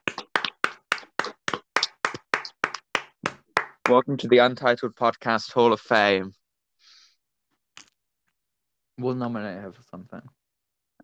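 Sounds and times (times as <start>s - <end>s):
sharp hand claps: 0.0s - 4.1s
speech: 3.9s - 6.4s, 9.0s - 10.4s.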